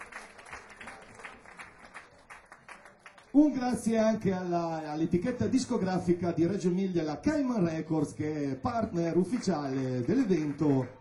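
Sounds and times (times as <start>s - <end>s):
audience applause: 0.0s - 3.4s, 9.1s - 10.9s
speech: 3.3s - 10.9s.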